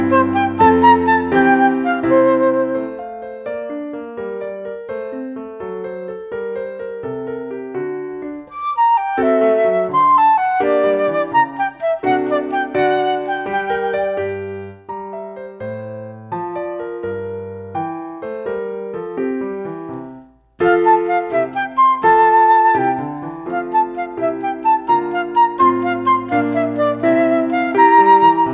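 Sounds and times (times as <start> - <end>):
flute: 0.0 - 3.8, 8.5 - 15.0, 20.6 - 28.5
instrumental accompaniment: 0.0 - 28.5.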